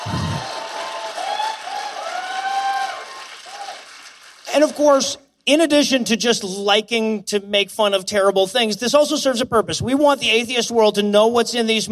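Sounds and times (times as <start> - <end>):
applause: 0.0 - 5.1
speech: 4.6 - 11.9.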